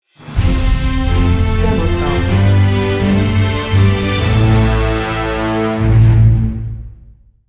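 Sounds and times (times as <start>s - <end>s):
musical stinger: 0.2s - 6.8s.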